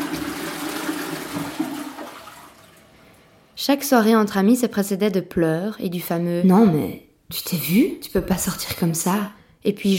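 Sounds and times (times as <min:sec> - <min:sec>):
toilet flushing: 0:00.0 - 0:03.4
speech: 0:03.6 - 0:09.9.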